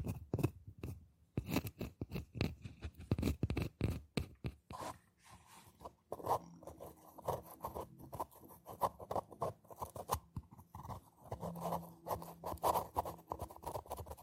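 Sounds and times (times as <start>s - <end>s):
scratching on boxes and hollow objects: 0.1s - 14.2s.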